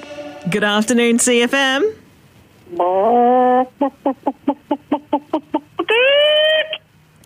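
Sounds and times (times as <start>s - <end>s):
speech: 0.5s - 2.0s, 2.7s - 6.7s
caller imitating a chicken: 2.7s - 6.9s.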